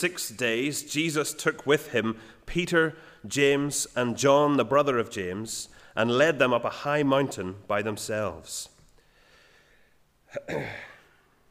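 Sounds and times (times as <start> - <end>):
speech: 0.0 - 8.7, 10.3 - 10.9
sneeze: 10.3 - 11.2.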